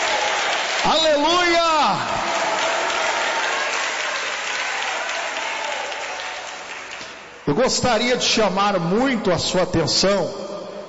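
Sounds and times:
audience applause: 0:00.0 - 0:07.4
speech: 0:00.8 - 0:02.3, 0:07.5 - 0:10.5.

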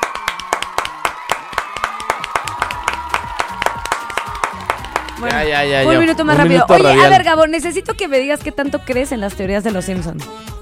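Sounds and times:
applause: 0:00.0 - 0:06.2
speech: 0:05.2 - 0:10.5.

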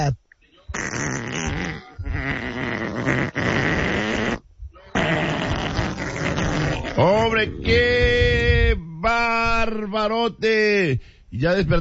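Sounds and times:
speech: 0:00.0 - 0:00.9, 0:07.0 - 0:11.7
fart: 0:00.7 - 0:07.2.

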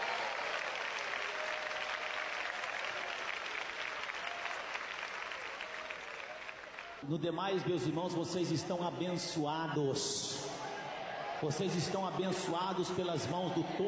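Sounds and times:
audience clapping hands: 0:00.0 - 0:07.1
speech: 0:07.0 - 0:10.3, 0:11.4 - 0:13.8.

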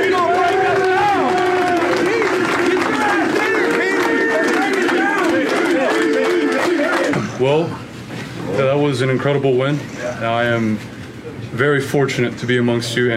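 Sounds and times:
stadium crowd section cheering and shouting: 0:00.0 - 0:07.4
speech: 0:07.4 - 0:07.8, 0:09.0 - 0:13.1.

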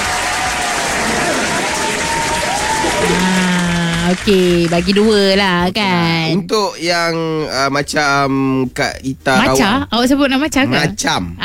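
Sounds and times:
raised voices and whoops: 0:00.0 - 0:04.4
crowd clapping: 0:00.0 - 0:05.6
speech: 0:04.2 - 0:11.4.

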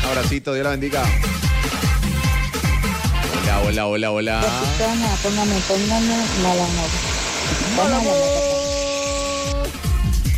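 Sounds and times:
speech: 0:00.1 - 0:01.9, 0:03.5 - 0:07.1, 0:07.7 - 0:08.6
pressure cooker whistling: 0:02.1 - 0:10.2.

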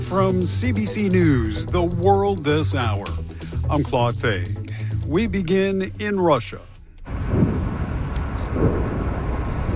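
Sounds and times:
speech: 0:00.1 - 0:06.7
distant explosions rumbling south of Moscow: 0:07.1 - 0:09.7.

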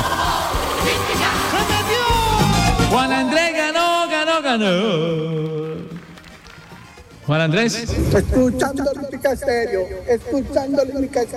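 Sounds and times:
audience applause: 0:00.0 - 0:02.9, 0:05.3 - 0:07.3
speech: 0:03.0 - 0:03.8, 0:04.5 - 0:05.8, 0:07.3 - 0:11.3.

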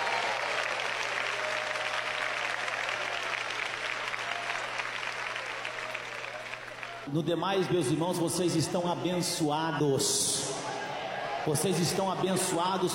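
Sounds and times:
audience applauding: 0:00.0 - 0:07.1
speech: 0:07.1 - 0:10.4, 0:11.4 - 0:12.9.

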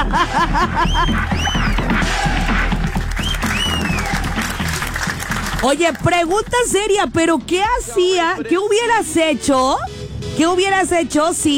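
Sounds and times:
laughter: 0:00.0 - 0:02.0
speech: 0:00.2 - 0:01.8, 0:05.6 - 0:11.5
applause: 0:01.4 - 0:06.6.

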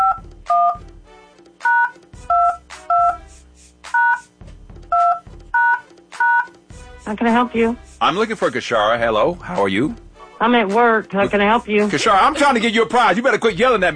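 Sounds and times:
telephone keypad dialing tones: 0:00.0 - 0:00.8, 0:01.6 - 0:03.2, 0:04.9 - 0:06.6
speech: 0:07.1 - 0:13.9.

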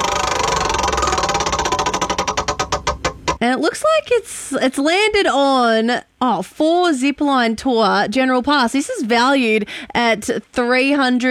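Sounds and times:
prize wheel spinning and ticking: 0:00.0 - 0:03.3
speech: 0:03.4 - 0:11.2.

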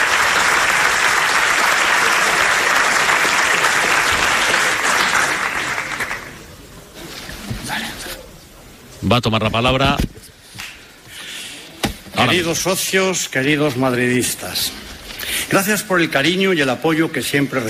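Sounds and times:
audience applause in hotel auditorium: 0:00.0 - 0:06.6
speech: 0:09.1 - 0:10.1, 0:12.2 - 0:14.8, 0:15.5 - 0:17.6.

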